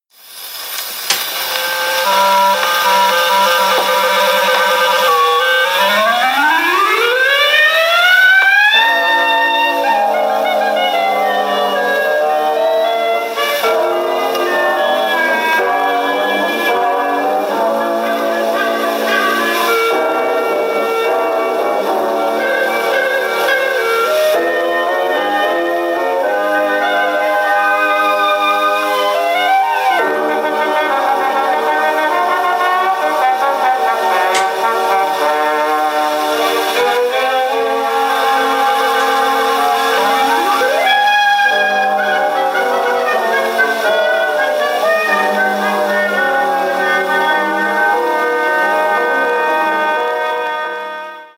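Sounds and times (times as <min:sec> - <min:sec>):
orchestra: 0:00.2 - 0:51.3.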